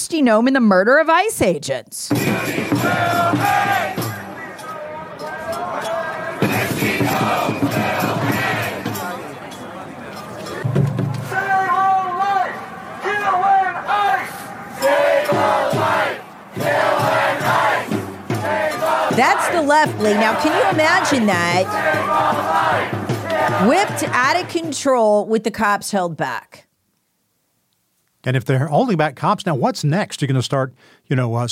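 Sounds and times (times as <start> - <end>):
speech: 0.1 - 4.0, 19.2 - 26.7, 28.2 - 31.4
huge crowd screaming and chanting: 2.1 - 24.5.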